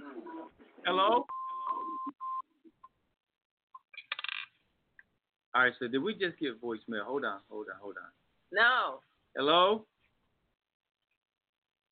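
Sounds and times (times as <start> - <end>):
speech: 0.9 - 1.4, 5.6 - 9.9
telephone dialing tones while placing a call: 1.2 - 2.5.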